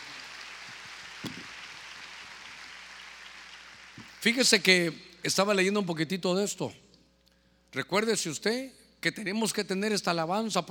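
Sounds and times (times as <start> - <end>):
audience clapping: 0.0 - 4.4
speech: 4.2 - 6.8, 7.7 - 10.7.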